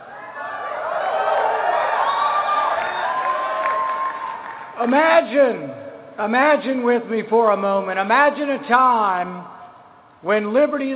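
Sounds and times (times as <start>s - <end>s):
crowd cheering and whooping: 0.0s - 4.9s
speech: 4.8s - 9.6s, 10.2s - 10.9s.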